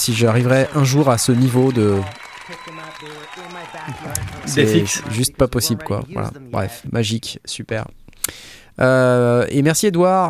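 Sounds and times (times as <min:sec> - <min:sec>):
speech: 0:00.0 - 0:10.2
hand clapping: 0:00.6 - 0:05.1.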